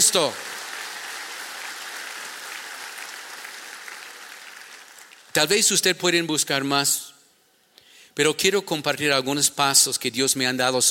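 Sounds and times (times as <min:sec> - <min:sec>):
speech: 0:00.0 - 0:00.5, 0:05.4 - 0:07.1, 0:08.2 - 0:10.8
audience applause: 0:00.0 - 0:05.3.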